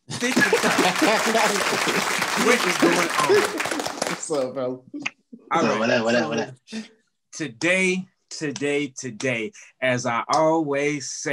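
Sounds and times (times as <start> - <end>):
applause: 0.0 - 4.4
laughter: 0.0 - 4.4, 5.5 - 6.8
voices calling out and cheering: 0.1 - 4.4, 5.6 - 6.6
speech: 0.2 - 11.3.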